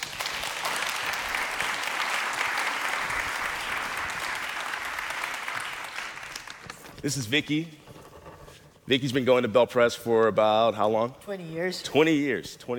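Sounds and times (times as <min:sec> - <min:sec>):
audience applause: 0:00.0 - 0:06.8
speech: 0:07.0 - 0:07.9, 0:08.9 - 0:12.7.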